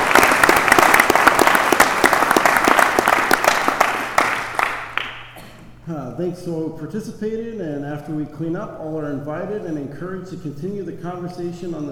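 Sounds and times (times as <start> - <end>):
audience applause for a panel: 0.0 - 5.2
speech: 6.2 - 11.8.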